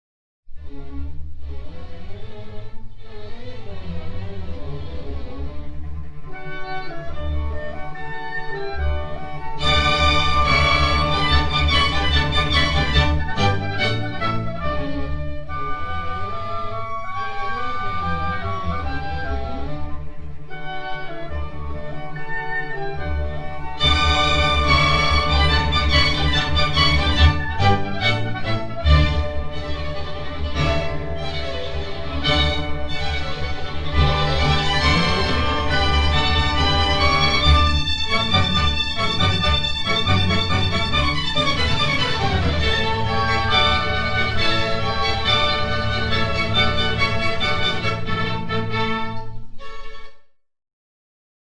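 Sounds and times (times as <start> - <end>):
orchestral music: 0.8 - 50.2.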